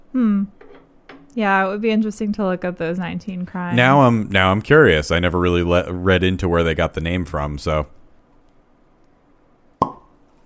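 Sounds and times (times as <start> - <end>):
speech: 1.4 - 8.0
bottle being uncorked: 9.8 - 10.1.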